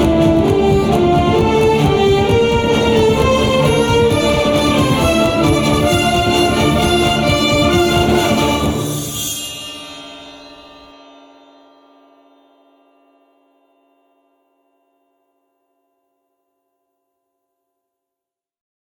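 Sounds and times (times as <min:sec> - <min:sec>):
orchestral mix: 0:00.0 - 0:10.7.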